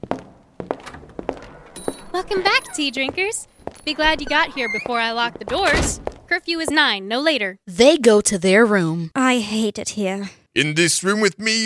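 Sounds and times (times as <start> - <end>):
footsteps walking: 0.0 - 6.9
speech: 2.1 - 11.6.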